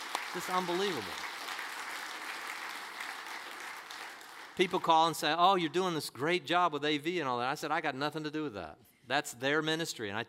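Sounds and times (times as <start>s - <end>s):
audience applause: 0.0s - 4.9s
speech: 0.4s - 1.3s, 4.6s - 10.2s.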